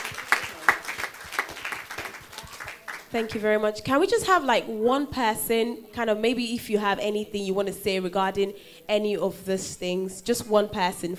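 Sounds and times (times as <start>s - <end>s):
small church group clapping: 0.0s - 3.5s
speech: 3.1s - 11.1s.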